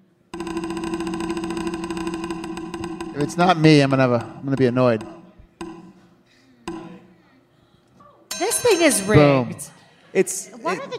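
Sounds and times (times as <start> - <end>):
prize wheel spinning: 0.4 - 5.3
speech: 3.2 - 5.2, 8.8 - 10.9.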